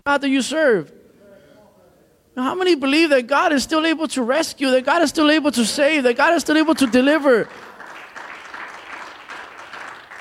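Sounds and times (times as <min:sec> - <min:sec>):
speech: 0:00.1 - 0:01.0, 0:02.4 - 0:07.7
church congregation clapping during a service: 0:06.1 - 0:10.1.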